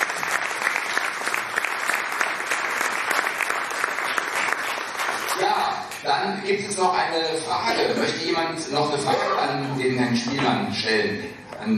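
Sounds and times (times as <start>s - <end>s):
audience applause: 0.0s - 5.8s
speech: 5.8s - 11.7s.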